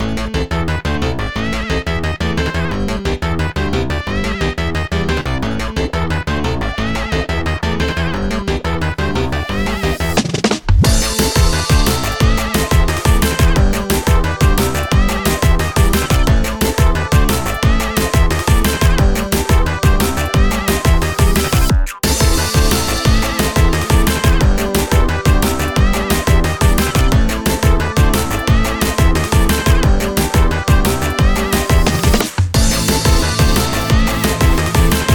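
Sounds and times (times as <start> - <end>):
instrumental music: 0.0 - 35.1.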